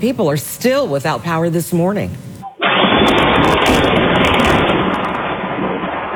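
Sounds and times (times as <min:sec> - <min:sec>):
speech: 0:00.0 - 0:02.3
lightning strike: 0:02.6 - 0:06.1.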